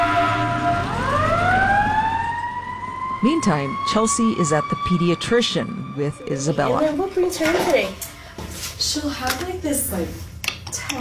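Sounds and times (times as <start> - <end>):
emergency vehicle siren wailing: 0.0 - 7.8
speech: 3.2 - 8.1, 8.8 - 11.0.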